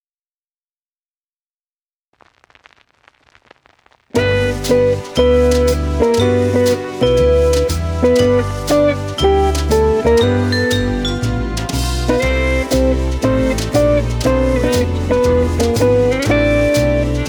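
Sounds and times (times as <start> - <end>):
nostalgic bells: 4.2 - 17.2.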